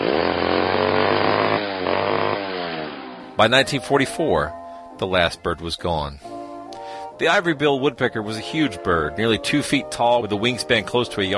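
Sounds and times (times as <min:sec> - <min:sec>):
loggers' chainsaw cutting into wood: 0:00.0 - 0:03.4
speech: 0:03.4 - 0:06.3, 0:07.2 - 0:11.3.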